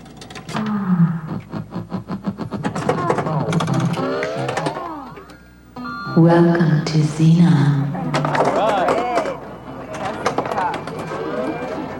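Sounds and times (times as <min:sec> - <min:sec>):
pinball machine powering up: 0:00.6 - 0:06.0, 0:08.0 - 0:11.9
speech: 0:06.2 - 0:08.3.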